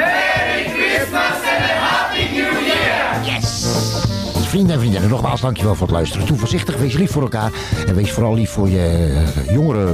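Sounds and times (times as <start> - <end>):
group of people cheering and shouting: 0.0 - 3.6
speech: 4.6 - 9.9.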